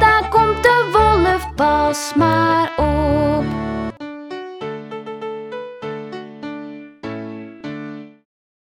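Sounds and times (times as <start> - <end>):
lied art song: 0.0 - 4.3.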